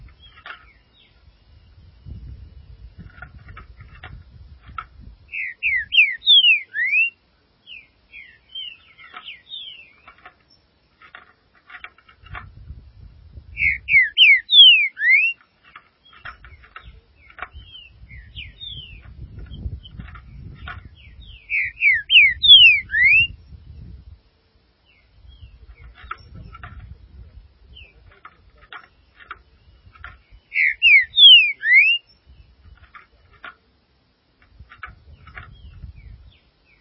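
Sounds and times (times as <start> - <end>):
green-winged saltator whistling song: 5.3 - 7.2, 13.5 - 15.4, 21.2 - 23.4, 30.5 - 32.2.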